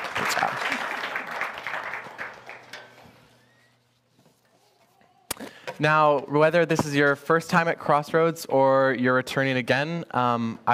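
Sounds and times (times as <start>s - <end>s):
audience applause: 0.0s - 2.9s
speech: 0.3s - 0.8s, 5.8s - 10.7s.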